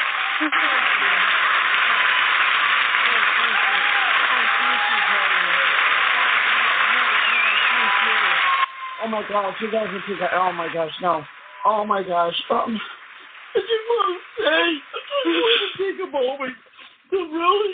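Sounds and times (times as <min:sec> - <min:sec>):
round of applause: 0:00.0 - 0:11.6
speech: 0:00.4 - 0:00.8, 0:09.1 - 0:13.0, 0:14.5 - 0:17.7.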